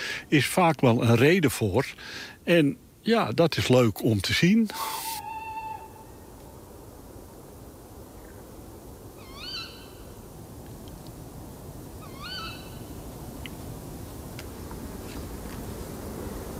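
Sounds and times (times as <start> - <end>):
steady hiss of noise: 0.0 - 16.5
speech: 0.3 - 5.0
owl calls: 4.7 - 6.4, 9.2 - 10.1, 12.0 - 12.9.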